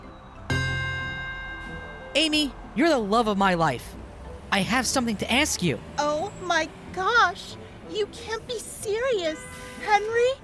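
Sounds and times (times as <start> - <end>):
City Hall bells ringing: 0.0 - 2.6
speech: 2.2 - 10.4.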